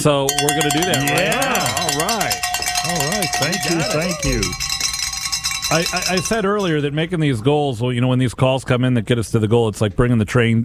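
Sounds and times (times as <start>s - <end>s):
speech: 0.0s - 4.7s, 5.7s - 10.6s
bells ringing in celebration: 0.3s - 7.1s.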